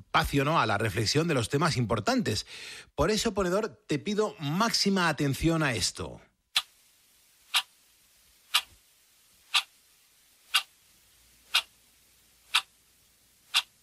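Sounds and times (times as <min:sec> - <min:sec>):
speech: 0:00.2 - 0:06.3
clock ticking: 0:08.5 - 0:08.8, 0:09.5 - 0:09.7, 0:10.5 - 0:10.7, 0:11.5 - 0:11.8, 0:12.5 - 0:12.8, 0:13.5 - 0:13.8.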